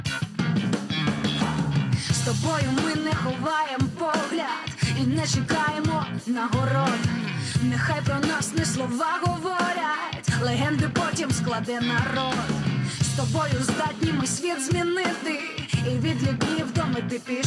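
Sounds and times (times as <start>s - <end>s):
short song played on radio: 0.1s - 17.4s
speech: 5.1s - 17.4s.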